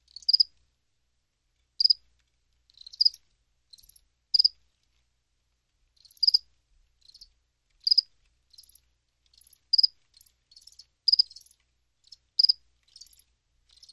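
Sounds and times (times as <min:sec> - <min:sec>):
cricket chirping: 0:00.1 - 0:00.5, 0:01.8 - 0:02.0, 0:02.7 - 0:04.6, 0:06.0 - 0:13.9.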